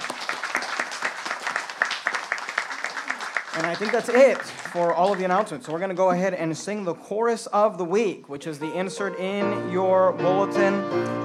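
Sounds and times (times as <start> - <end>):
crowd applause for a baptism: 0.0 - 6.0
speech: 3.6 - 11.2.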